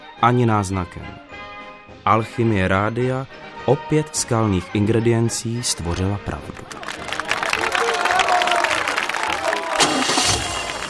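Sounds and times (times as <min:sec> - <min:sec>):
speech: 0:00.2 - 0:01.2, 0:02.0 - 0:07.1
crowd clapping: 0:06.4 - 0:10.8
excited crowd voices: 0:06.8 - 0:10.8
cheering crowd roaring: 0:07.1 - 0:10.8.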